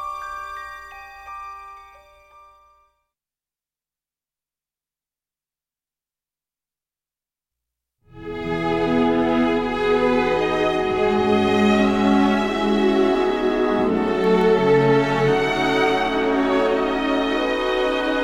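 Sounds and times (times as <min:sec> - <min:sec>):
film music: 0:08.1 - 0:18.2.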